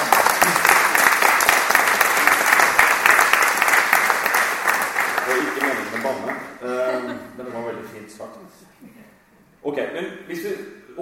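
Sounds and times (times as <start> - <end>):
crowd applause: 0.0 - 6.6
speech: 6.6 - 11.0.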